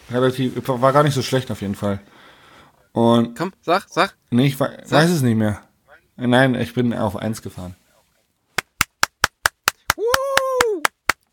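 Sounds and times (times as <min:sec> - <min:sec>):
speech: 0:00.1 - 0:07.8
single person clapping: 0:08.6 - 0:11.3.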